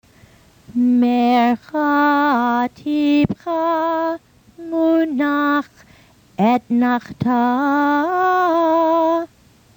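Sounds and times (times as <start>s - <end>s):
Haftarah cantillation chanting: 0.8s - 5.8s, 6.4s - 9.3s.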